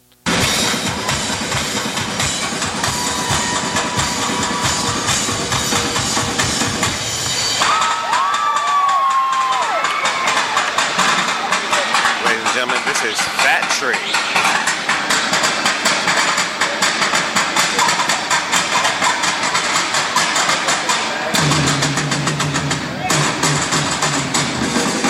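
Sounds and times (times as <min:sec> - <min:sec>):
rapid driving drum hits in a live percussion stage show: 0:00.3 - 0:25.0
loud cheering crowd: 0:00.4 - 0:21.4
people shouting: 0:02.4 - 0:06.8, 0:07.6 - 0:11.0.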